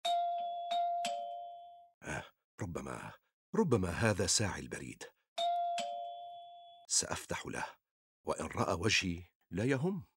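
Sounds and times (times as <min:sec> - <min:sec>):
doorbell chiming: 0:00.0 - 0:01.8, 0:05.4 - 0:06.7
speech: 0:02.0 - 0:05.2, 0:06.9 - 0:10.1.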